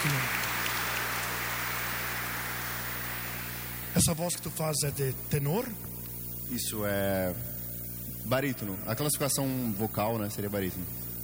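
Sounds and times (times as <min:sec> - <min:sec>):
applause: 0:00.0 - 0:03.9
low electrical hum: 0:00.0 - 0:11.2
speech: 0:04.0 - 0:07.5, 0:08.2 - 0:11.0.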